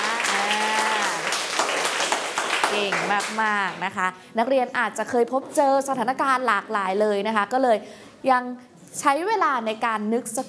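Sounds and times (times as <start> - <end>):
students in a classroom applauding a classmate: 0.0 - 3.6
speech: 2.8 - 10.4.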